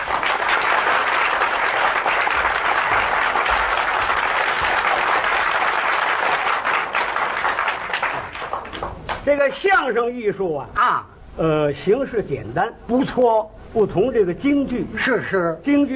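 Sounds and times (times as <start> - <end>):
audience applause: 0.0 - 9.2
speech: 9.3 - 15.9.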